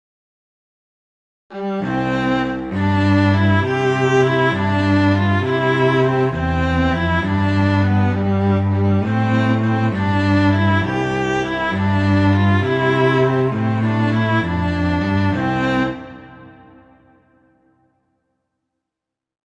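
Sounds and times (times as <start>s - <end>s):
viola and cello playing a Christmas carol: 1.5s - 17.0s.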